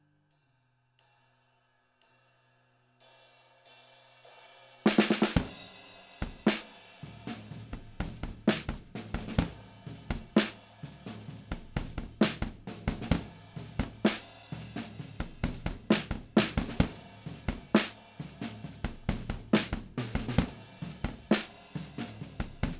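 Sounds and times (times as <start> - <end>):
snare drums: 4.8 - 22.7.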